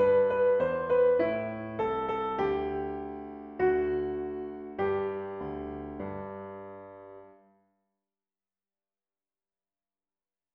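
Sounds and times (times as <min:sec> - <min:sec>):
piano: 0:00.0 - 0:07.7.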